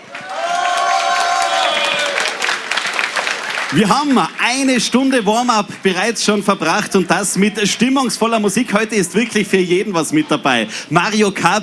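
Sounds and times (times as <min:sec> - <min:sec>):
cheers and high whoops: 0:00.0 - 0:02.9
audience applause: 0:00.0 - 0:06.0
speech: 0:03.7 - 0:11.6.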